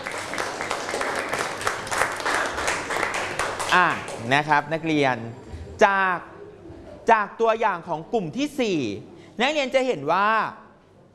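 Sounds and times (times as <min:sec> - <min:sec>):
students clapping: 0:00.0 - 0:04.4
speech: 0:03.7 - 0:06.3, 0:07.1 - 0:10.6.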